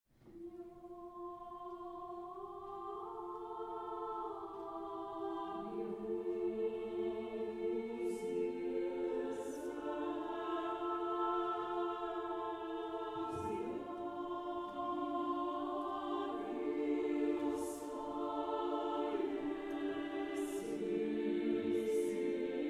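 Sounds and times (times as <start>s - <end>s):
hymn: 0.3s - 22.6s.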